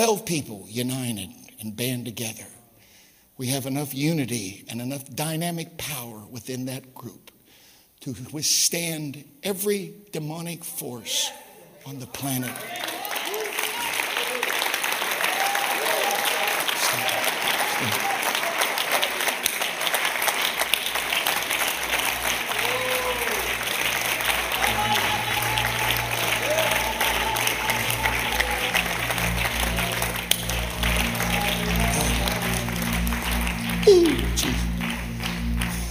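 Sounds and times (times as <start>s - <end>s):
speech: 0.0s - 2.6s, 3.4s - 7.3s, 8.0s - 12.9s, 17.8s - 18.1s
audience clapping: 12.1s - 35.8s.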